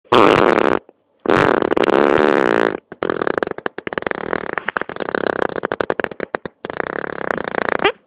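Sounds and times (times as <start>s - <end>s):
fart: 0.1s - 8.0s.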